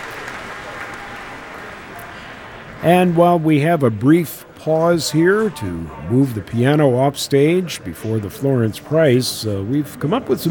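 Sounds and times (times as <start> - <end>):
concert audience applause at the Millennium Park pavilion: 0.0 - 2.4
speech: 2.8 - 10.4.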